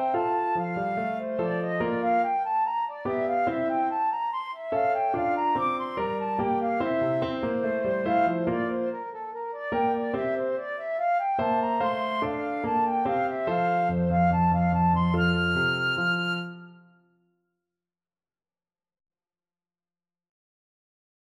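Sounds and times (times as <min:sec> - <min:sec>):
flute playing a march in D: 0:00.0 - 0:17.0.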